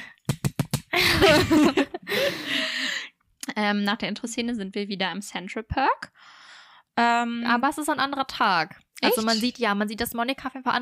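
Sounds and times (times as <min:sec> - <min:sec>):
hand clapping along to intro: 0:00.0 - 0:01.1
laughter: 0:01.0 - 0:02.7
speech: 0:03.6 - 0:06.4, 0:07.0 - 0:10.8.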